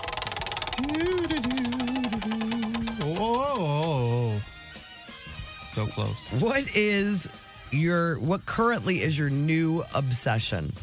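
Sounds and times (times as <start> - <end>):
wavering sliding tone: 0.0 - 3.9
prize wheel spinning with ticking clicks: 0.0 - 4.4
speech: 5.8 - 10.8.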